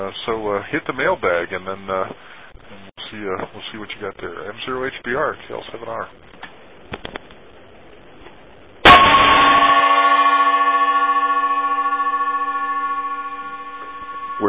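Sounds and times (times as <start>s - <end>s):
speech: 0.0s - 6.3s
gong struck: 8.8s - 14.4s.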